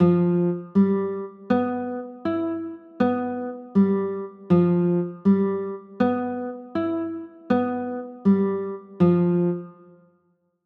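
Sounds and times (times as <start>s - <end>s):
G13 chords: 0.0s - 10.0s.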